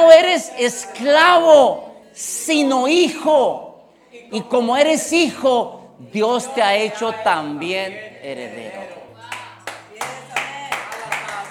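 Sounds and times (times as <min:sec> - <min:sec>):
speech: 0:00.4 - 0:09.0
audience clapping: 0:09.3 - 0:11.4.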